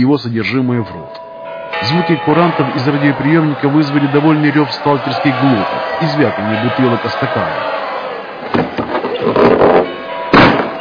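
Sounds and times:
speech: 0.0 - 7.8
front door flung open: 8.5 - 10.7.

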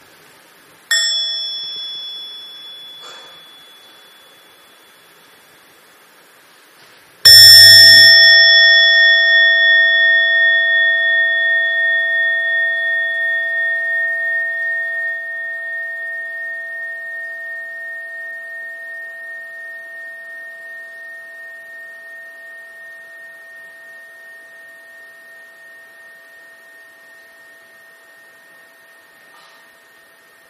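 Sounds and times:
mindfulness bell used in Buddhist practice ringing: 0.9 - 6.0, 7.2 - 30.4
low pulsing hum of a mindfulness bell: 7.3 - 30.4.

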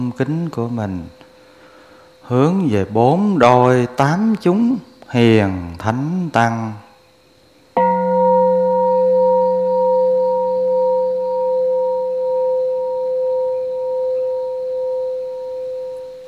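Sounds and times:
speech: 0.1 - 1.2, 2.3 - 6.8
temple bell struck: 7.8 - 16.2.

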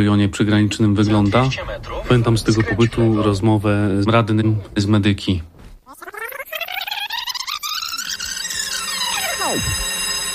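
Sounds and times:
speech: 0.0 - 5.5, 9.5 - 9.8
school bell ringing: 8.2 - 10.3.

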